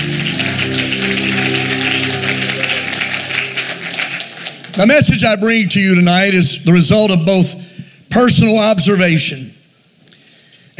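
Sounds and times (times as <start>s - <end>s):
sustained low musical tones: 0.0s - 4.7s
audience clapping: 0.0s - 5.6s
speech: 4.8s - 9.6s.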